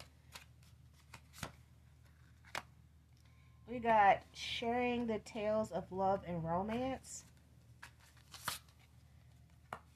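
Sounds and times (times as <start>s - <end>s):
oracle cards being shuffled for a love reading: 0.0s - 2.8s, 7.2s - 9.9s
speech: 3.7s - 7.3s.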